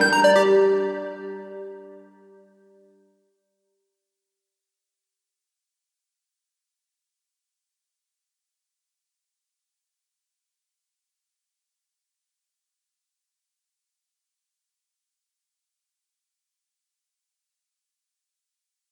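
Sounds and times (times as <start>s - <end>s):
airy house synth pluck with reverb: 0.0s - 2.3s.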